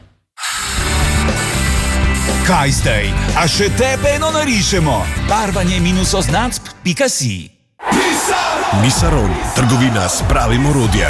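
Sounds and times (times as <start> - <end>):
power drill with new bit drilling into concrete: 0.4 - 2.5
speech: 2.5 - 7.6, 8.7 - 11.0.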